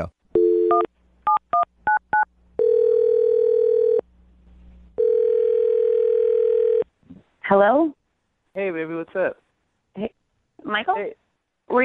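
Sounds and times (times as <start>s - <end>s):
speech: 0.0s - 0.9s, 7.5s - 8.0s, 8.6s - 9.4s, 10.0s - 11.8s
phone ringing tone: 0.4s - 0.9s, 2.6s - 4.0s, 5.0s - 6.8s.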